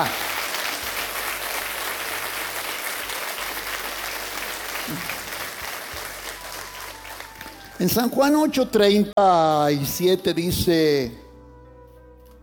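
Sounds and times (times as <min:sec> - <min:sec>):
audience applause: 0:00.0 - 0:08.1
speech: 0:07.8 - 0:11.2.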